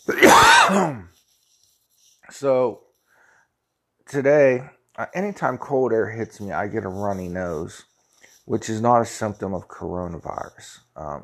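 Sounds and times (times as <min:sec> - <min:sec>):
speech: 0:00.0 - 0:01.1, 0:02.3 - 0:02.8, 0:04.1 - 0:07.9, 0:08.5 - 0:11.2
throat-clearing cough: 0:00.1 - 0:01.1.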